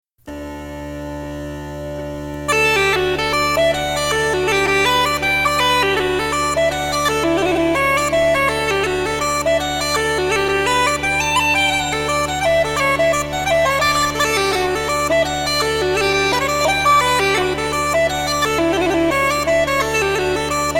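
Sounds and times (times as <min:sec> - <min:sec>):
hornpipe tune: 0:00.3 - 0:20.7.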